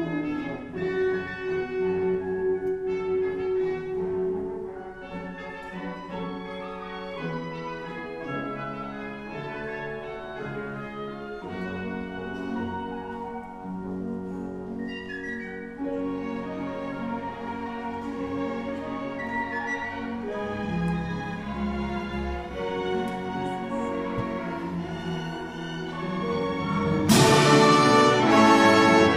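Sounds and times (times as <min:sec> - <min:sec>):
traditional carol music: 0:00.0 - 0:29.1.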